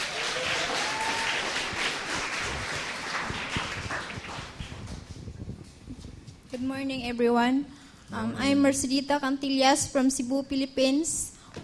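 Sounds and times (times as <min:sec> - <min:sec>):
church congregation applause welcoming a speaker: 0:00.0 - 0:05.2
speech: 0:06.6 - 0:11.6.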